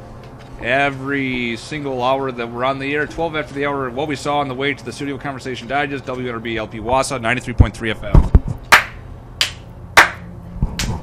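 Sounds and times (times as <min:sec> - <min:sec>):
speech: 0:00.6 - 0:08.6
sharp hand claps as an editing marker in a studio: 0:08.7 - 0:11.0.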